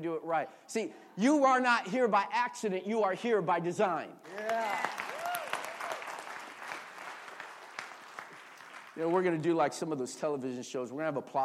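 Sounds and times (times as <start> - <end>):
speech: 0.0 - 5.2, 9.0 - 11.4
audience clapping: 4.2 - 9.6.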